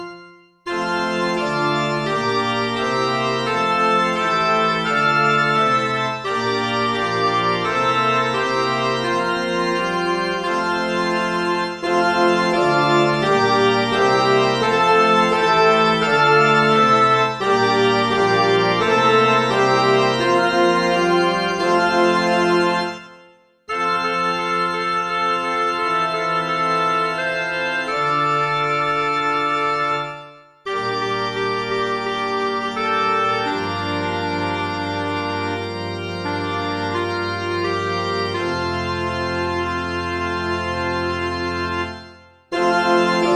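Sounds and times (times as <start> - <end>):
MIDI music: 0.7 - 43.3.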